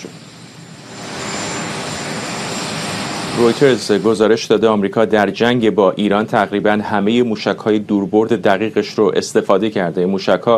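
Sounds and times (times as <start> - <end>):
Marine One US presidential helicopter arriving at a joint base: 0.0 - 5.8
speech: 3.4 - 10.5.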